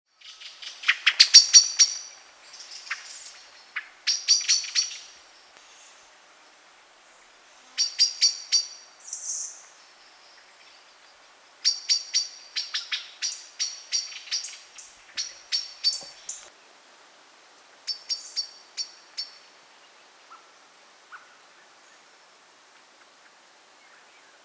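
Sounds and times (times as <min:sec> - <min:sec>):
Common blackbird giving sharp metallic chink calls: 0:00.2 - 0:06.1, 0:07.7 - 0:16.5, 0:17.9 - 0:19.5.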